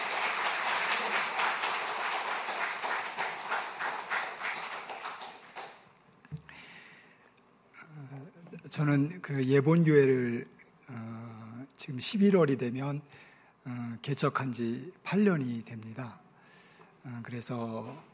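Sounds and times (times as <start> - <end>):
audience applause welcoming a speaker: 0.0 - 5.9
speech: 8.7 - 11.0, 11.9 - 16.2, 17.0 - 18.1.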